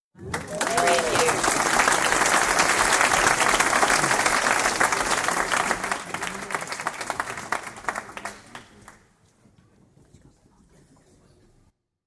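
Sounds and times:
big crowd audience applause: 0:00.2 - 0:09.0.

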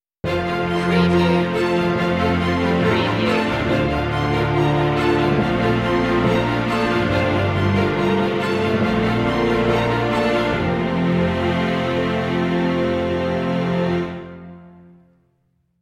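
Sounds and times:
soaring orchestral logo music: 0:00.2 - 0:15.1.

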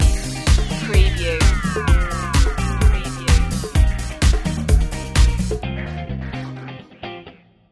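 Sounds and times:
pop music stinger: 0:00.1 - 0:05.0.

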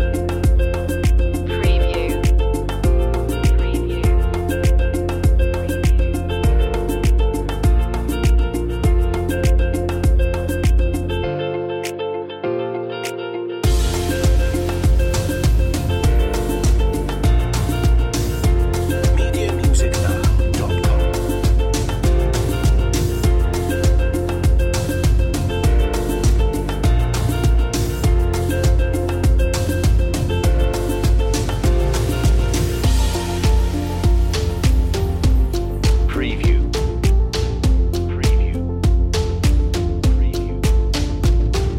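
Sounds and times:
corporate background music: 0:00.0 - 0:41.7.

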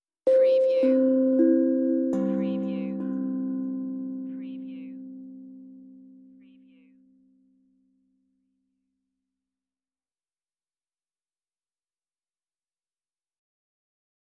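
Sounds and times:
meditative tongue drum tone: 0:00.3 - 0:06.9.

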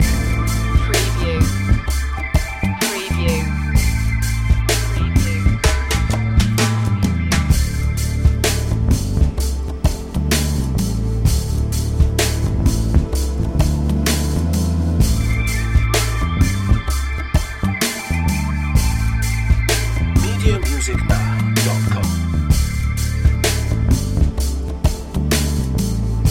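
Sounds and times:
slow music loop: 0:00.0 - 0:25.2.

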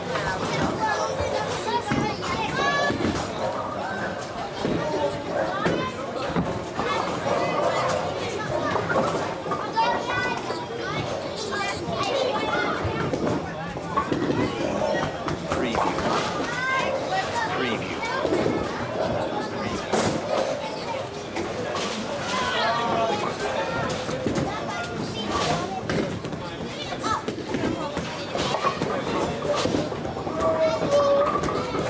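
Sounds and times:
very busy crowd in a bowling hall: 0:00.0 - 0:31.8.

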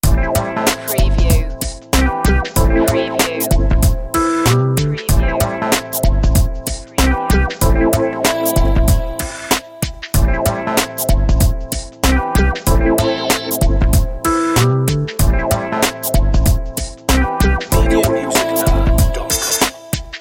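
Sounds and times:
funky summer music loop: 0:00.0 - 0:20.1.

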